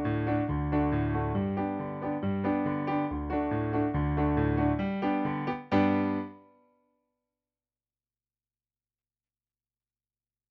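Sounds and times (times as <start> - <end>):
piano: 0.0 - 6.8.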